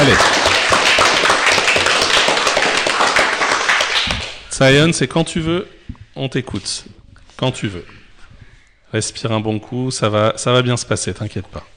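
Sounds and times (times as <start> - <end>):
people clapping hands: 0.0 - 4.5
speech: 4.6 - 8.0, 8.9 - 11.7.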